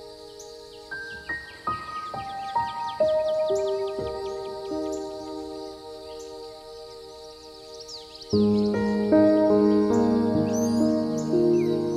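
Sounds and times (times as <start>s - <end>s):
birds chirping in high twittering notes: 0.0s - 11.9s.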